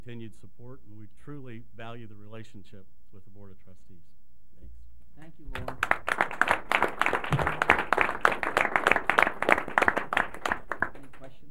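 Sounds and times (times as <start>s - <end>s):
speech: 0.1s - 10.0s
room full of people applauding: 5.5s - 11.4s.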